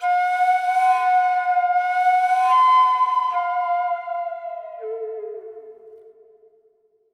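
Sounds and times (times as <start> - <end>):
flute with echo: 0.0 - 6.6.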